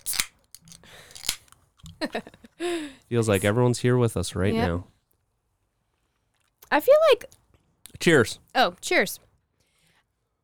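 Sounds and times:
drink can cracking open with fizzing hiss: 0.0s - 2.0s
speech: 2.0s - 4.9s, 6.7s - 7.4s, 8.0s - 9.2s.

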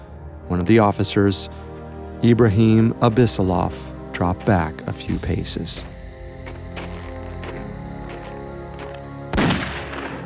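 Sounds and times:
speech: 0.5s - 6.0s
single gunshot: 9.3s - 10.2s.

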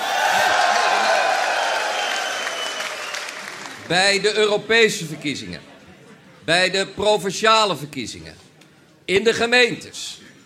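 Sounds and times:
large crowd clapping and cheering at a political party's election victory celebration: 0.0s - 4.0s
speech: 3.9s - 5.7s, 6.4s - 8.4s, 9.1s - 10.3s.

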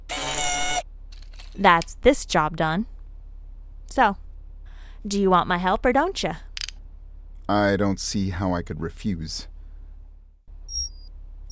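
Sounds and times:
low rumble: 0.8s - 11.5s
speech: 1.6s - 2.9s, 4.0s - 4.2s, 5.0s - 6.5s, 7.5s - 9.5s
electronic alarm beep: 10.7s - 11.5s.

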